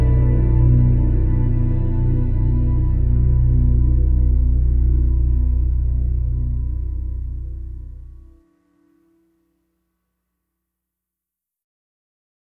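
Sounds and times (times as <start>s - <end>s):
pensive drone: 0.0s - 8.4s.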